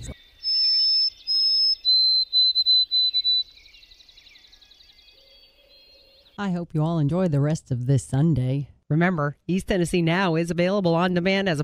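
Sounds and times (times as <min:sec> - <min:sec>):
whistled bird song: 0:00.0 - 0:06.4
speech: 0:06.4 - 0:11.6.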